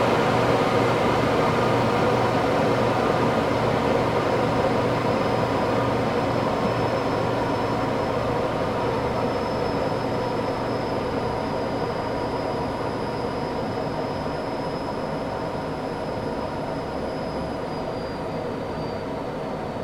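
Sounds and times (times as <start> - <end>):
1947 Gloster Meteor F Mk8 fighter jet interior on approach: 0.0 - 19.8.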